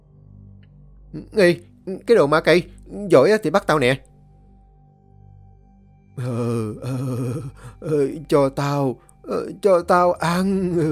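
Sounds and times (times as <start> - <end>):
speech: 1.1 - 4.1, 6.2 - 10.8
addict groaning like a crazed man: 6.2 - 8.3, 10.3 - 10.8.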